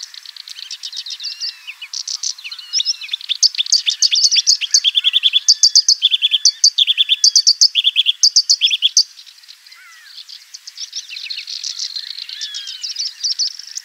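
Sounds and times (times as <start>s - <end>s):
Oriental Reed Warbler song: 0.0s - 13.8s.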